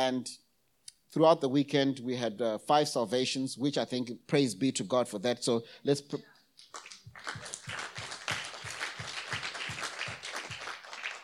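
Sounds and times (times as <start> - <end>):
speech: 0.0 - 0.4, 1.1 - 7.5
congregation clapping at a church service: 6.6 - 11.2.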